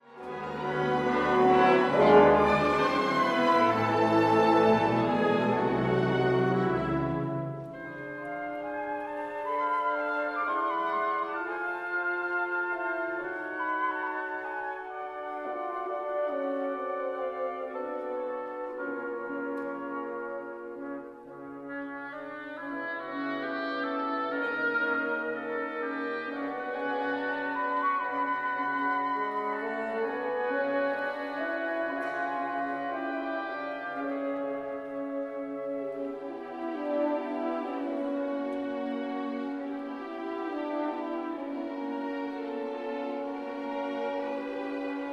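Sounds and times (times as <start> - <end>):
trumpet concerto: 0.0 - 45.1.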